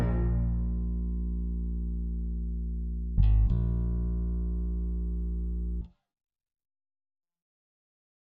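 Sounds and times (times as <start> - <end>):
deep bass accents: 0.0 - 5.8.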